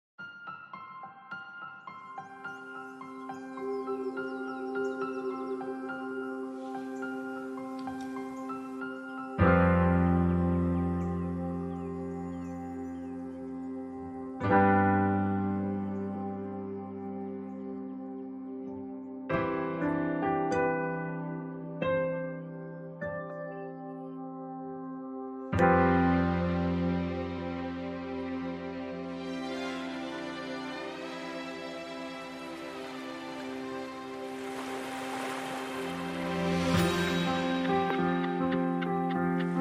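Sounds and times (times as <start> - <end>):
instrumental music: 0.2 - 39.6.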